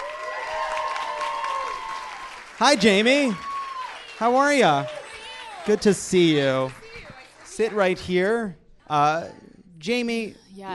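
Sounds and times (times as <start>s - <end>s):
talk show studio audience applauding and cheering a guest comedian: 0.0s - 8.5s
speech: 2.6s - 3.5s, 4.2s - 5.0s, 5.6s - 6.8s, 7.6s - 10.7s.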